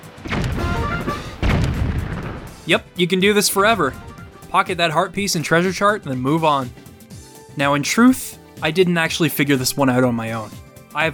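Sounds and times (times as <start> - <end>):
video game ship cannon firing: 0.1 - 2.7
speech: 2.7 - 6.8, 7.6 - 11.1.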